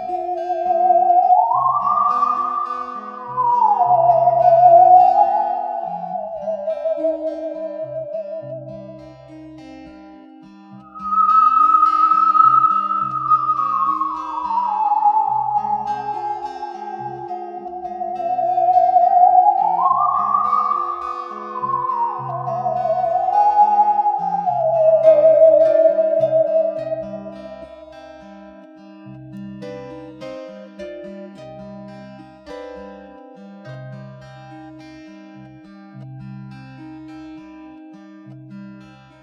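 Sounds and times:
theremin: 0.0s - 9.7s, 10.7s - 30.6s.

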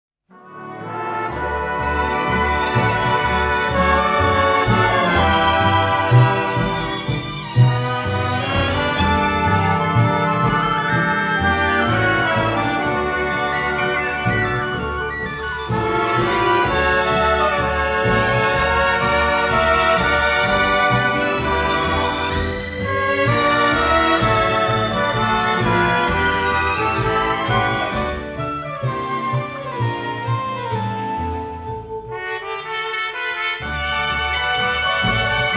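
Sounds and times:
variety orchestra playing a tango serenade: 0.3s - 35.5s.

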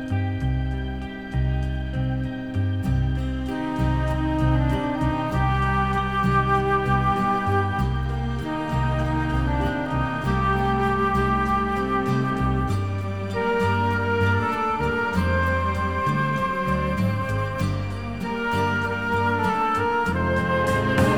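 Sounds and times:
string orchestra: 0.2s - 21.1s.

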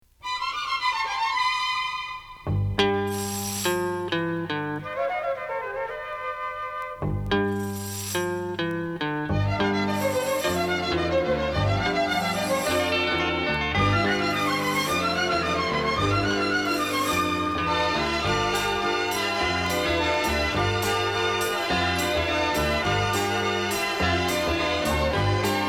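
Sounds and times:
strings: 0.2s - 5.7s, 6.3s - 25.6s.

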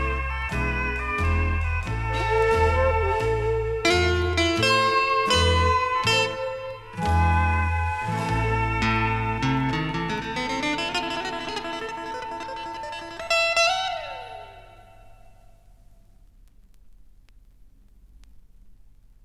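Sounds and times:
orchestra: 0.0s - 13.0s.

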